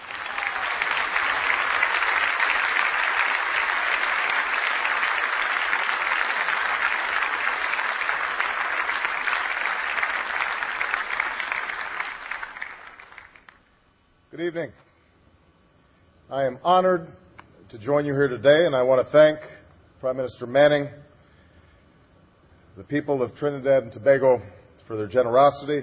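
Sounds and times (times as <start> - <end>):
audience applause welcoming President Barack Obama at a summit in Trinidad and Tobago: 0.0 - 13.6
speech: 14.4 - 14.9, 16.3 - 21.0, 22.8 - 25.8.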